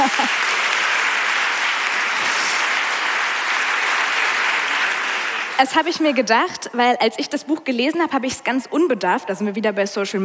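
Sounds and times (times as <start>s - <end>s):
audience clapping: 0.0s - 6.5s
speech: 5.6s - 10.2s.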